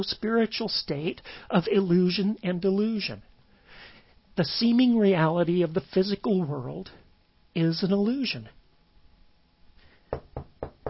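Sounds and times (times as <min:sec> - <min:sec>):
speech: 0:00.0 - 0:03.3, 0:04.4 - 0:07.0, 0:07.6 - 0:08.6
knuckles knocking on a table: 0:10.1 - 0:10.8.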